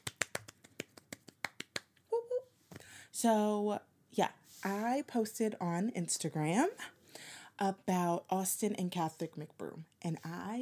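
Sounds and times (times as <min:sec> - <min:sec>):
single hand clap: 0:00.0 - 0:01.9
speech: 0:03.1 - 0:10.5.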